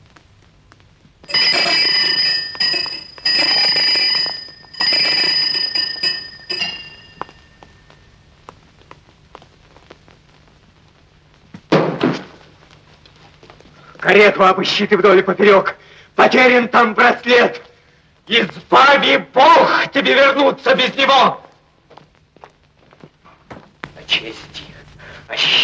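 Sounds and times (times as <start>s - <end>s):
small hand bell ringing to summon servants: 1.3s - 7.8s
speech: 14.1s - 17.7s, 18.3s - 21.4s.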